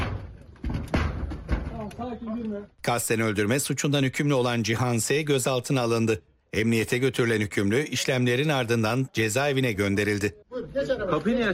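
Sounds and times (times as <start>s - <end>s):
special operations police breaking a door with a battering ram: 0.0s - 1.9s
speech: 1.9s - 11.5s.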